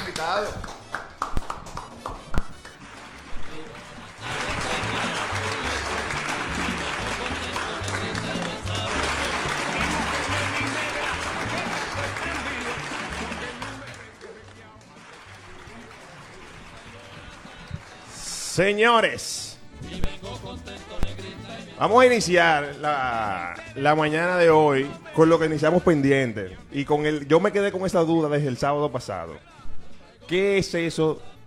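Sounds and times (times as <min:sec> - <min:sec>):
applause for arriving guests: 0:00.0 - 0:18.2
speech: 0:00.2 - 0:00.8, 0:18.6 - 0:19.4, 0:21.8 - 0:29.6, 0:30.3 - 0:31.3.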